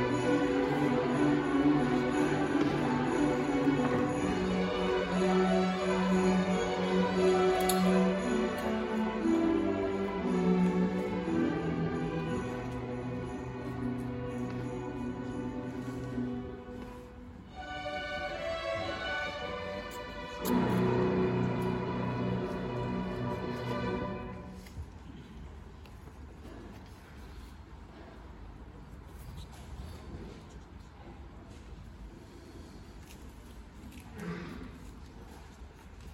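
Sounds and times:
senior string ensemble playing a Christmas carol: 0.0 - 24.8.

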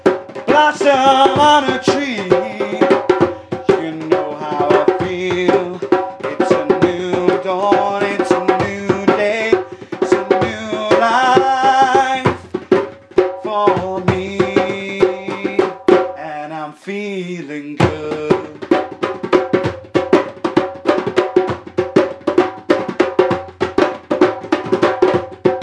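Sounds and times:
djembes: 0.0 - 16.3, 17.8 - 25.6
vocals: 0.0 - 19.6.

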